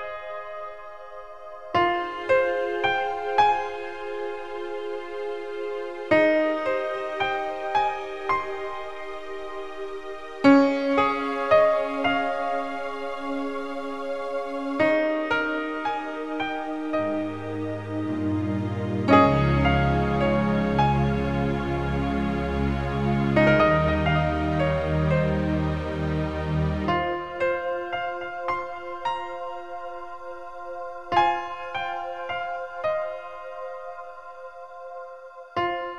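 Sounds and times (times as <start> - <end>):
keyboard playing: 0.9 - 35.8.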